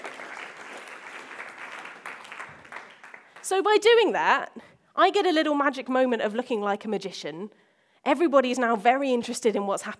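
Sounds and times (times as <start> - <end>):
audience applause: 0.0 - 3.5
speech: 3.4 - 9.9.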